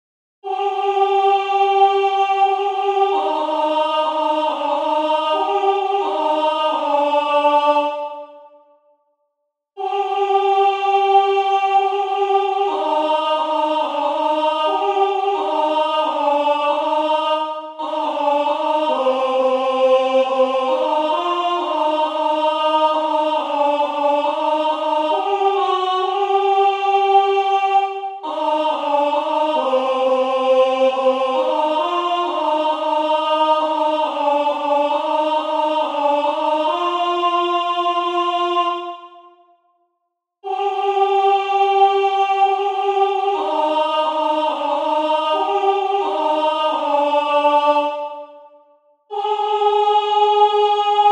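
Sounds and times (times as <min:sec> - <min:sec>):
alto voices singing a training part: 0:00.4 - 0:08.8, 0:09.8 - 0:39.6, 0:40.4 - 0:51.1.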